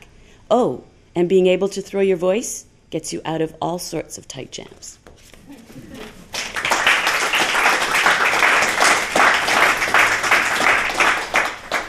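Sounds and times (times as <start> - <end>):
speech: 0.5 - 5.0
audience applause: 6.0 - 11.8.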